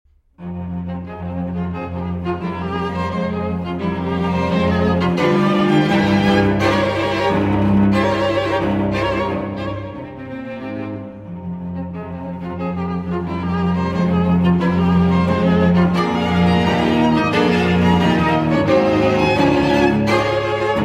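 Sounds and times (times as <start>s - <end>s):
string quartet playing a fast finale: 0.4s - 20.8s.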